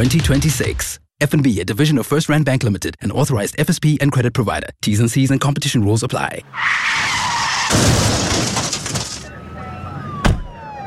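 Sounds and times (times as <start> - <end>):
speech: 0.0 - 8.6
tires skidding in a car accident: 6.4 - 10.0.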